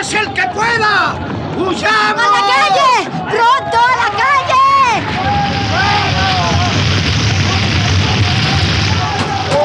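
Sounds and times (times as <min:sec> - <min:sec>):
speech: 0:00.0 - 0:03.1
fire spreading through a burning building, radio drama effect: 0:03.9 - 0:09.6.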